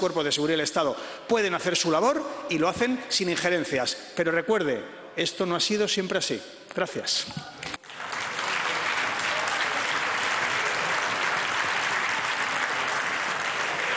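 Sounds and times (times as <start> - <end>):
speech: 0.0 - 7.6
applause in parliamentary chamber: 7.8 - 13.9.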